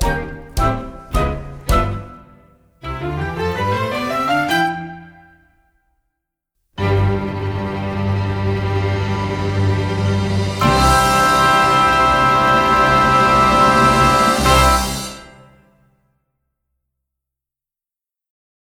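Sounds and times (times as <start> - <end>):
instrumental music: 0.0 - 5.6, 6.8 - 15.5.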